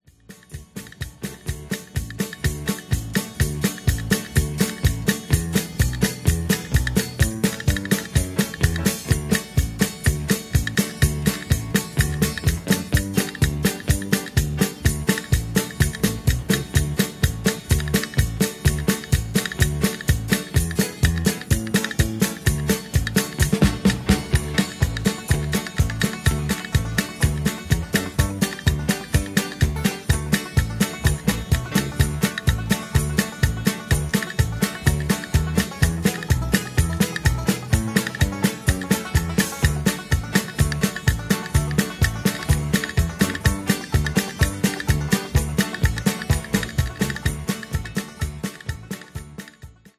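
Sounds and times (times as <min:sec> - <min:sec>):
hoedown music: 0:00.1 - 0:49.9.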